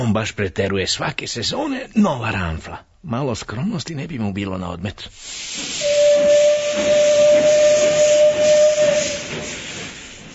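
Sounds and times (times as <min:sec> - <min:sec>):
speech: 0:00.0 - 0:05.5
hissing steam: 0:05.1 - 0:10.3
steam train whistle as it departs: 0:05.8 - 0:10.2.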